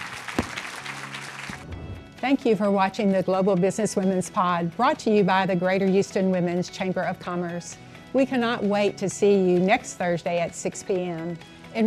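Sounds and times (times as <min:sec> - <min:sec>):
audience applause: 0:00.0 - 0:01.7
speech: 0:02.2 - 0:11.8.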